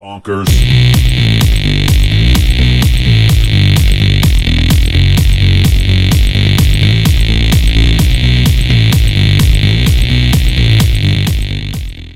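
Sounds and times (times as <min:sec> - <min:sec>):
strong beat ringtone: 0:00.5 - 0:12.1.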